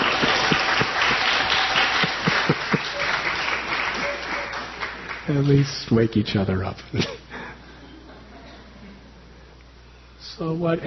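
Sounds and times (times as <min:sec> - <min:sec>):
laughter: 0:00.0 - 0:05.1, 0:06.9 - 0:08.9
audience applause: 0:00.0 - 0:05.8
speech: 0:05.3 - 0:07.2, 0:10.4 - 0:10.8.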